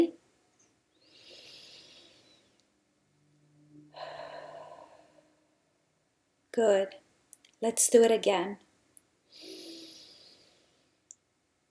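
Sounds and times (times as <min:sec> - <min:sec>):
deep breath in through the nose and out through the mouth: 0:01.0 - 0:02.6, 0:03.9 - 0:05.6, 0:09.3 - 0:11.0
speech: 0:06.6 - 0:07.0, 0:07.6 - 0:08.6.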